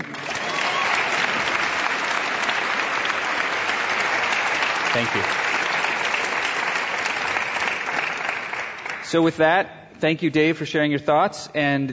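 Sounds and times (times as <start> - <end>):
round of applause: 0.0 - 9.3
speech: 4.9 - 5.4, 9.1 - 11.9.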